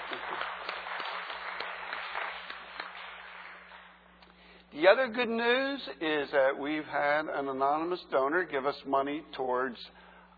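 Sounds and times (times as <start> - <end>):
crowd applauding: 0.0 - 4.0
speech: 4.8 - 10.0.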